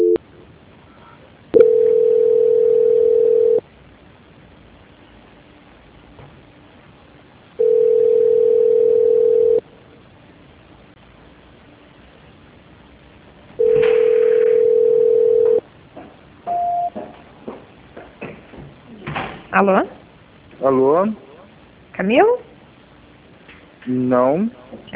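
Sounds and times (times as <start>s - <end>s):
ringback tone on a telephone line while waiting for an extension to answer: 1.6s - 3.6s, 7.6s - 9.6s, 13.6s - 15.6s, 16.5s - 16.9s
speech: 19.6s - 20.0s, 20.6s - 21.2s, 22.0s - 22.4s, 23.9s - 24.9s.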